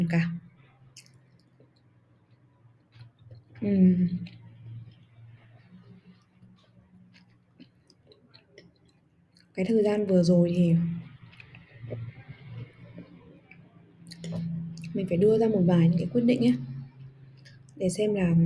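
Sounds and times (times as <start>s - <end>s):
speech: 0.0s - 0.4s, 3.6s - 4.4s, 9.6s - 11.0s, 11.9s - 12.1s, 15.0s - 16.7s, 17.8s - 18.4s
low steady hum: 0.0s - 18.4s
soft chewing: 0.5s - 9.8s, 11.0s - 15.0s, 16.6s - 17.8s.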